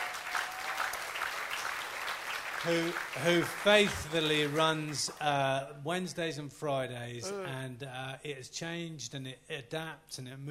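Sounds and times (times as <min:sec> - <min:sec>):
audience applause: 0:00.0 - 0:05.3
speech: 0:02.6 - 0:10.4.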